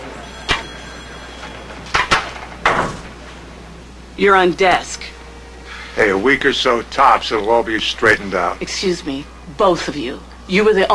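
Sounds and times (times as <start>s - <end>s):
door closing: 0.3s - 3.4s
speech: 4.2s - 5.1s, 6.0s - 10.9s.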